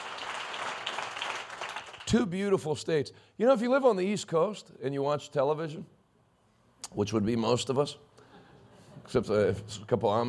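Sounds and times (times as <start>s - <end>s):
audience applause: 0.0s - 2.1s
speech: 2.1s - 6.0s, 6.9s - 8.1s, 9.1s - 10.2s.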